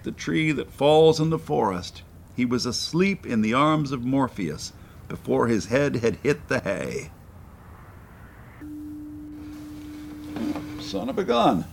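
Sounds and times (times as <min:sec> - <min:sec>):
speech: 0:00.0 - 0:07.2, 0:10.9 - 0:11.7
low rumble: 0:07.2 - 0:08.8
foghorn blast: 0:08.6 - 0:11.7.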